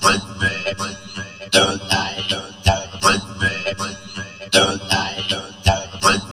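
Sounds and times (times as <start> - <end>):
vocoder voice: 0.0 - 6.3
heavily processed drum loops: 1.6 - 3.7, 4.6 - 6.0.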